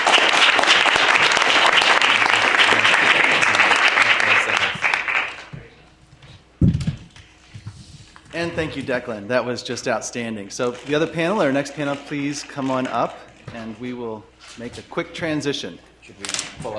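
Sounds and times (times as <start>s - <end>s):
audience applause: 0.0s - 5.5s
speech: 8.4s - 16.7s.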